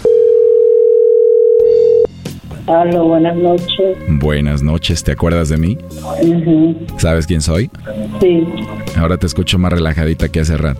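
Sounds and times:
telephone call ring tone: 0:00.0 - 0:02.1
speech: 0:02.7 - 0:10.7.

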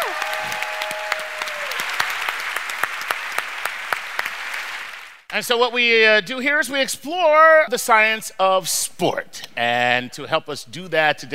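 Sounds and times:
audience round of applause: 0:00.0 - 0:05.2
speech: 0:05.4 - 0:11.3.

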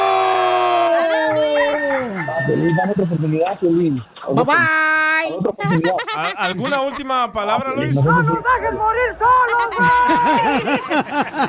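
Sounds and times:
rooster crowing: 0:00.0 - 0:03.0
speech: 0:02.8 - 0:11.4
laughter: 0:05.6 - 0:08.6, 0:09.5 - 0:11.4.

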